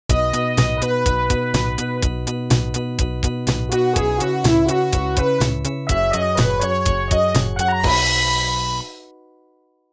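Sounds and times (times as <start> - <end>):
music intro at 124 bpm: 0.1 - 9.1.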